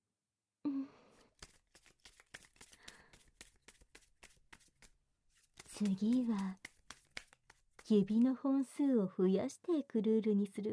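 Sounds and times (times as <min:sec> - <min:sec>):
playing cards being reshuffled: 0:01.3 - 0:07.9
speech: 0:05.8 - 0:06.6, 0:07.9 - 0:10.7.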